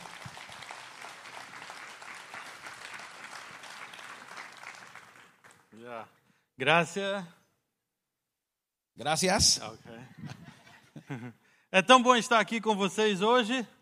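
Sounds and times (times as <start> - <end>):
audience applause welcoming speaker: 0.0 - 5.8
speech: 5.8 - 7.4, 9.0 - 10.4, 11.1 - 13.8
laughter: 10.0 - 11.4.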